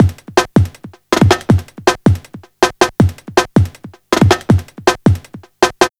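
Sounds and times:
drum loop: 0.0 - 5.9.

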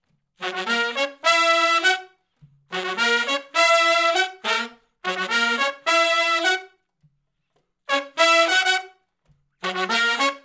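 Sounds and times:
R&B horn riff in F sharp in unison: 0.4 - 6.8, 7.9 - 9.0, 9.6 - 10.4.

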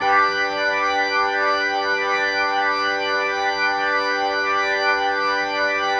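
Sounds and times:
organ chord progression loops: 0.0 - 5.9.

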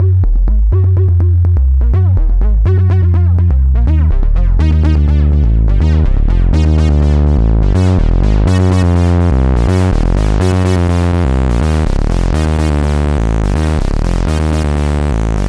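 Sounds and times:
synth arpeggio: 0.0 - 15.4.

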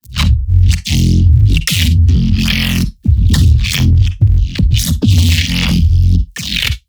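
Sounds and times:
neuro bass: 0.0 - 6.8.

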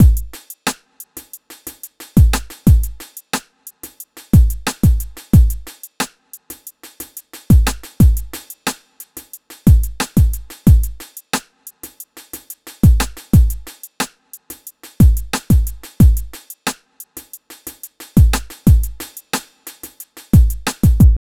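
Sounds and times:
hip-hop beat: 0.0 - 1.3, 2.1 - 3.2, 3.8 - 5.8, 7.5 - 11.2, 12.8 - 16.5, 17.2 - 21.2.

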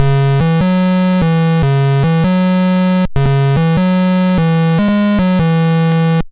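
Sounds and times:
Apple II chiptune bass: 0.0 - 6.2.

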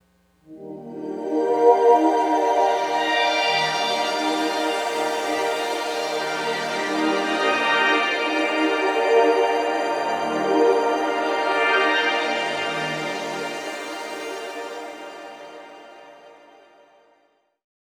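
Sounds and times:
sparkling major synth pad: 0.5 - 16.2.

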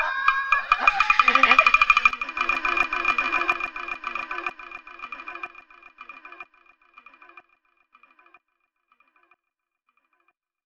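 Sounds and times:
kabuki music: 0.0 - 5.6.

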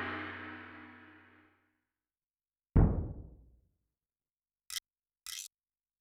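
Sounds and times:
Yamaha DTXpress-II electronic drum percussion: 2.8 - 3.3.

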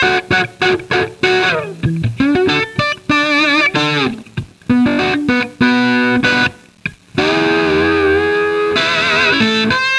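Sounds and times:
chunky guitar riff: 0.0 - 9.9.

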